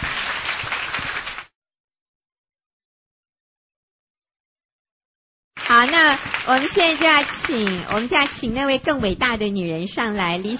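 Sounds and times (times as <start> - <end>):
audience applause: 0.0 - 1.5, 5.6 - 8.3
speech: 5.7 - 10.5.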